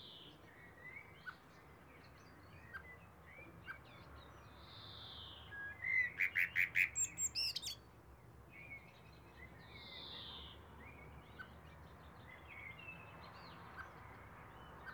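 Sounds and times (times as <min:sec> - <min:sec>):
high squeaky notes and faint bird chirps: 0:05.8 - 0:07.8
common blackbird calls: 0:06.1 - 0:07.8.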